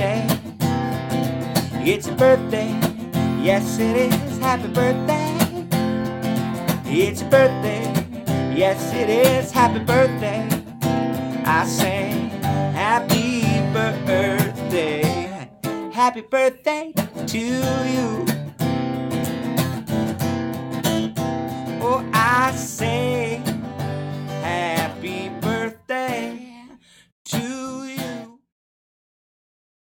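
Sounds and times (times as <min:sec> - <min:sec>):
guitar playing a birthday song: 0:00.0 - 0:28.4.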